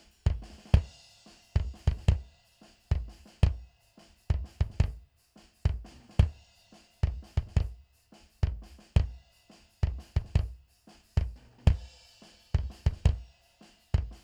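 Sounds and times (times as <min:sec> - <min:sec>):
mono bass drum: 0:00.0 - 0:01.0, 0:01.6 - 0:02.3, 0:02.9 - 0:03.6, 0:04.3 - 0:05.1, 0:05.7 - 0:06.4, 0:07.0 - 0:07.8, 0:08.4 - 0:09.2, 0:09.8 - 0:11.9, 0:12.6 - 0:13.2.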